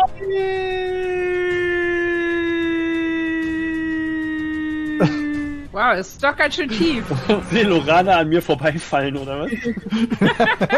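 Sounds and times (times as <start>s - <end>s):
long sustained scream: 0.5s - 5.4s
speech: 5.0s - 5.2s, 5.8s - 10.7s
laughter: 5.0s - 5.4s, 6.7s - 10.7s.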